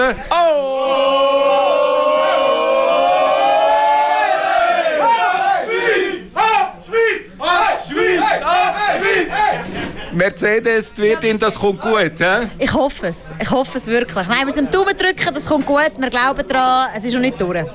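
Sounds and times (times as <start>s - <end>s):
speech: 0.1s - 0.7s, 10.2s - 17.7s
crowd yelling and chanting cheers: 0.2s - 9.8s.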